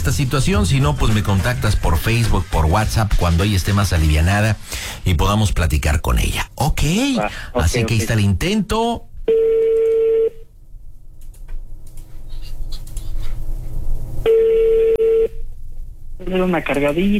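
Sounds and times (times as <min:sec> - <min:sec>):
recorded-sounding voicemail voice: 0:00.0 - 0:09.1
speech: 0:00.0 - 0:09.6, 0:16.4 - 0:17.1
telephone call ringback tones: 0:09.3 - 0:10.4, 0:14.3 - 0:15.4.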